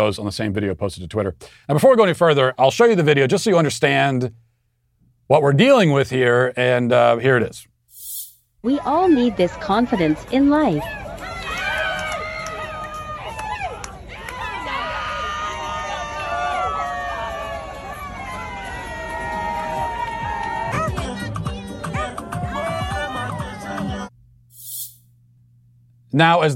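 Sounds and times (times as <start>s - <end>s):
speech: 0.0s - 4.4s, 5.3s - 7.7s, 8.6s - 11.1s, 26.2s - 26.5s
crowd of adults cheering and shouting: 8.6s - 24.1s.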